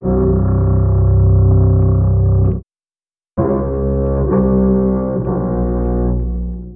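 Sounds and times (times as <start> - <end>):
sad bass loop: 0.0 - 2.6, 3.4 - 6.7.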